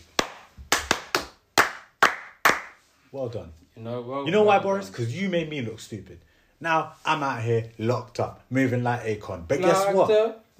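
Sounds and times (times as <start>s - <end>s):
person clapping: 0.0s - 2.9s
speech: 3.1s - 10.5s.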